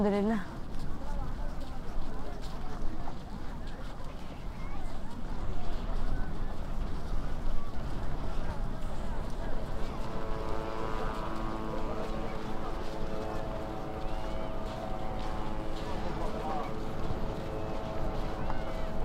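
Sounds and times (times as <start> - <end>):
dense noisy background: 1.1 - 19.0
military drones buzzing in the sky: 9.5 - 19.0.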